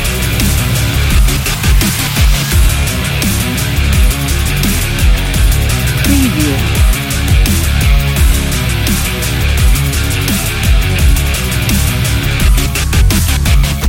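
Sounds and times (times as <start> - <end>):
dubstep rock power music: 0.0 - 13.8.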